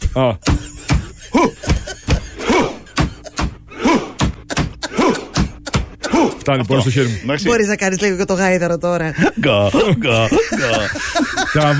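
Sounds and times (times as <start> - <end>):
heavy thudding drum-like beats: 0.0 - 6.0
speech: 0.2 - 0.6, 6.4 - 11.7
laughter: 0.6 - 7.2, 9.2 - 11.7
loud deep shouts: 3.7 - 6.4.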